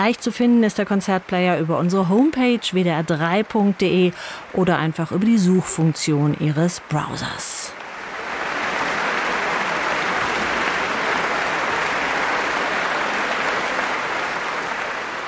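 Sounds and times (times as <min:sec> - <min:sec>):
speech: 0:00.0 - 0:07.8
concert audience applause: 0:07.9 - 0:15.2.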